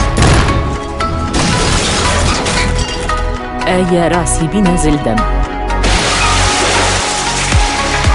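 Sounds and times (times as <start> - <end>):
bombs launched and exploding in a robot fight: 0.0 - 2.4, 5.8 - 8.0
speech: 3.7 - 5.5.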